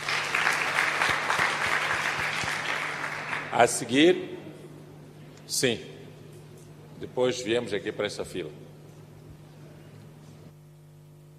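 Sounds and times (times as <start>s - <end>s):
audience applause: 0.0s - 3.8s
speech: 3.6s - 4.4s, 5.5s - 6.0s, 7.0s - 8.6s.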